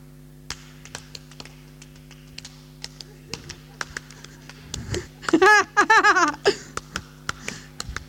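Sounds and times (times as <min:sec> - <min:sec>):
hands clapping a rhythm: 0:00.5 - 0:08.0
brief voiced laughing sound: 0:02.8 - 0:07.9.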